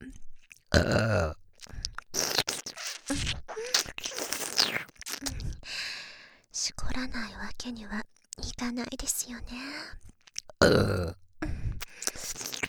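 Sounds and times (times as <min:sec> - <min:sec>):
short throaty breathy sounds: 0:00.0 - 0:06.5, 0:10.6 - 0:12.6
crude deliberate burp: 0:00.7 - 0:01.4, 0:10.6 - 0:11.2
speech: 0:00.7 - 0:01.4, 0:07.0 - 0:08.0, 0:08.6 - 0:11.2.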